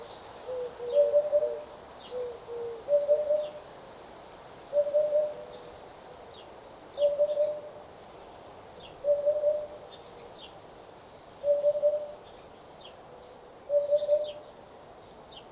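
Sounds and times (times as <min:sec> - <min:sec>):
Eurasian Hoopoe Upupa epops singing: 0:00.0 - 0:03.6, 0:07.0 - 0:07.7, 0:09.0 - 0:09.8, 0:11.4 - 0:12.2, 0:13.7 - 0:14.4.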